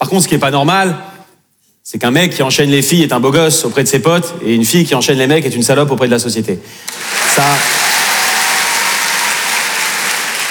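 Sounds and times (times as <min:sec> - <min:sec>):
speech: 0:00.1 - 0:01.1, 0:01.8 - 0:08.0
audience applause: 0:06.9 - 0:10.4.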